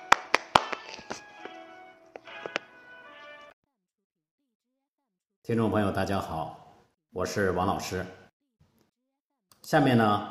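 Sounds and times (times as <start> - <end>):
audience applause: 0.0 - 1.6
speech: 5.5 - 8.2, 9.7 - 10.2.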